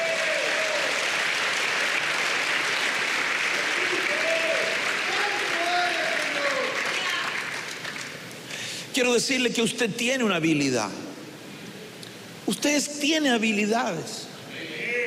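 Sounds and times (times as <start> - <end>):
audience clapping: 0.0 - 8.5
speech: 9.0 - 11.0, 12.6 - 14.3.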